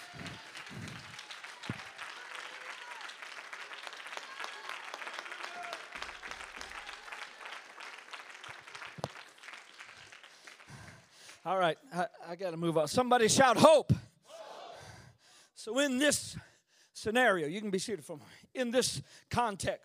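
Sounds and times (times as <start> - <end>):
audience clapping hands: 0.0 - 11.6
speech: 11.5 - 14.0, 15.6 - 19.8.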